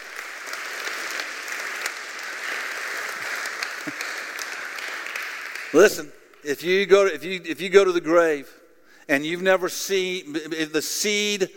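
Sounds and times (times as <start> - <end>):
audience clapping: 0.0 - 6.6
speech: 5.7 - 11.5.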